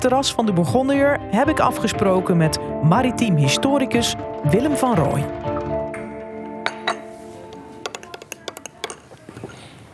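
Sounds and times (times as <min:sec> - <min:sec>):
speech: 0:00.0 - 0:05.5
porcelain coffee cups and saucers clinking as they are set down: 0:06.6 - 0:09.6
soft murmur: 0:07.1 - 0:09.9.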